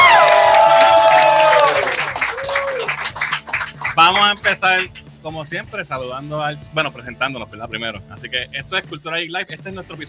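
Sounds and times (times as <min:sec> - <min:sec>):
live crowd applauding and cheering: 0:00.0 - 0:05.1
speech: 0:04.1 - 0:10.0.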